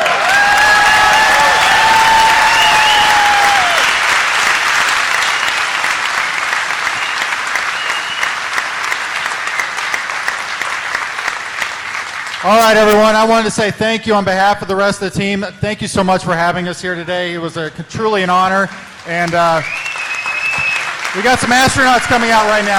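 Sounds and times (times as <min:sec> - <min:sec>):
cheers and whistles: 0:00.0 - 0:09.9, 0:19.6 - 0:22.7
large live crowd applauding: 0:00.0 - 0:13.3, 0:18.7 - 0:22.7
speech: 0:12.5 - 0:19.8, 0:21.2 - 0:22.7.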